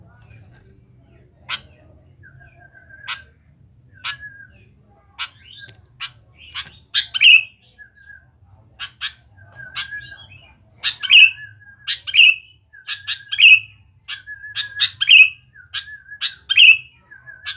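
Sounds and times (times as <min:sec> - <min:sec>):
sooty-headed bulbul singing: 0:01.1 - 0:17.5.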